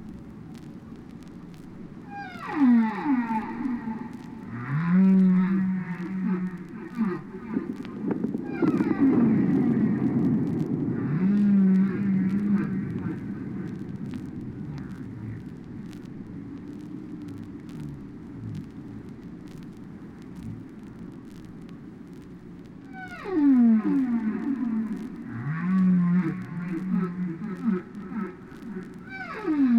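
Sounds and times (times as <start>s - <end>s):
whale song: 2.0s - 15.4s, 22.9s - 29.7s.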